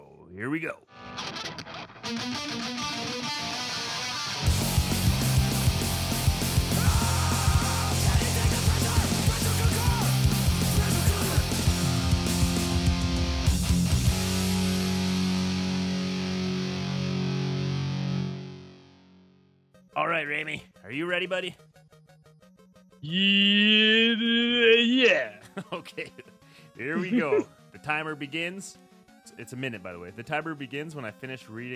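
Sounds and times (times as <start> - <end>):
speech: 0.4 - 4.6, 20.2 - 21.7, 23.0 - 31.7
band's rock song with heavily distorted guitars: 0.9 - 19.2
laughter: 24.4 - 27.5.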